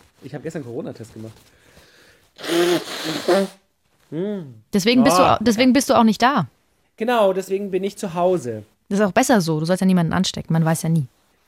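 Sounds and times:
speech: 0:00.2 - 0:01.7, 0:02.5 - 0:11.4
nose blowing: 0:02.3 - 0:04.4.

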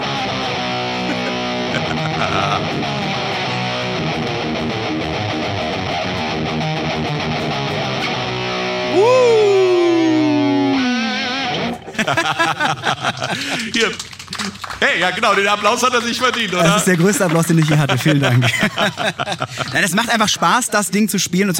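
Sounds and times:
distorted electric guitar riff played live: 0:00.0 - 0:09.0, 0:09.6 - 0:11.9
laughter: 0:00.8 - 0:04.0, 0:11.7 - 0:20.5
speech: 0:02.2 - 0:03.2, 0:12.1 - 0:21.5.

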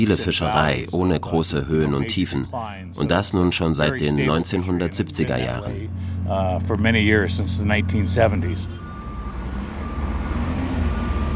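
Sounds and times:
speech: 0:00.0 - 0:08.8
forklift engine noise: 0:00.0 - 0:11.3
forklift reversing beeps at a quay: 0:07.9 - 0:11.3.

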